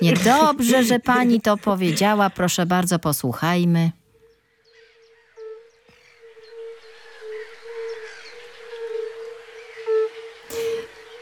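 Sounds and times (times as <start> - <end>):
speech: 0.0 - 4.0
chorus of fire-bellied toads hooting: 4.2 - 11.1
faint high chirps: 4.2 - 11.1.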